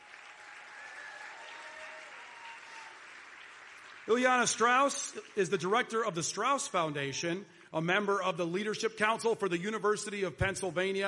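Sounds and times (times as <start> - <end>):
audience applause at an event in Philadelphia: 0.0 - 5.8
speech: 4.1 - 11.0.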